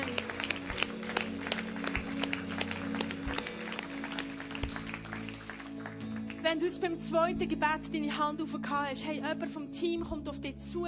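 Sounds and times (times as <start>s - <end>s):
audience applauding: 0.0s - 6.6s
speech: 6.5s - 10.8s.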